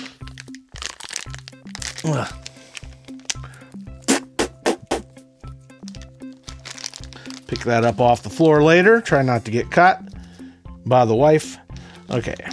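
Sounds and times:
teeth tearing plastic packaging of an Operation board game: 0.0 - 4.5, 5.7 - 7.7
speech: 2.0 - 2.5, 7.5 - 10.0, 10.9 - 12.5.

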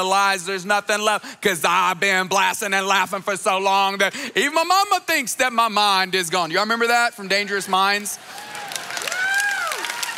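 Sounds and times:
speech: 0.0 - 8.5
audience clapping: 7.6 - 10.1
person whooping: 8.3 - 10.1.

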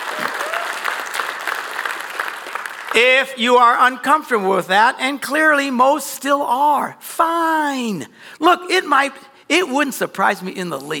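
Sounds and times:
church audience cheering: 0.0 - 3.4
speech: 2.9 - 10.9.

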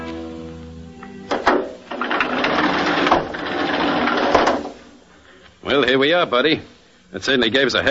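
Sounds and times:
hand-cranked elevator in a garage hauled up by emergency crew: 1.3 - 5.0
speech: 6.0 - 7.8.

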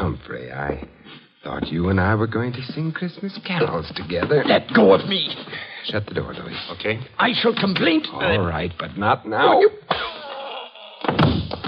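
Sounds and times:
speech: 0.1 - 10.1
man hit over the head with a gun: 11.0 - 11.6.

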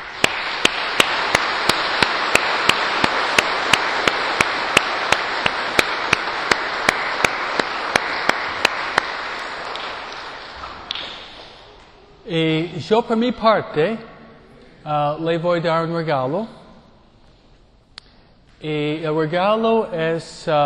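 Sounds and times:
big round of applause: 0.0 - 11.7
speech: 12.3 - 14.1, 14.8 - 16.6, 18.6 - 20.6.

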